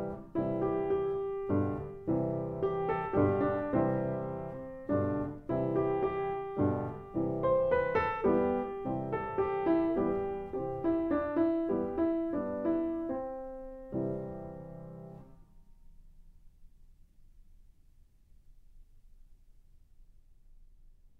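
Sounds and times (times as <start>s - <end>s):
solo piano: 0.0s - 16.1s.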